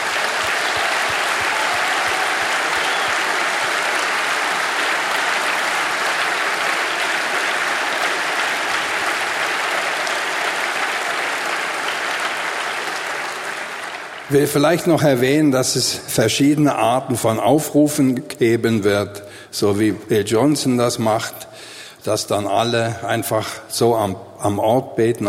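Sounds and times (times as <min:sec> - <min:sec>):
audience applause: 0:00.0 - 0:14.9
speech: 0:14.3 - 0:25.2.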